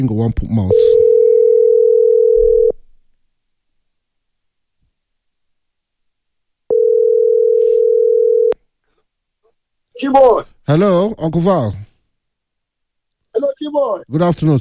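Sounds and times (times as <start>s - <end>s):
speech: 0.0s - 1.1s, 10.0s - 11.9s, 13.4s - 14.5s
incoming phone call ringing with long electronic tones: 0.7s - 2.8s, 6.7s - 8.6s.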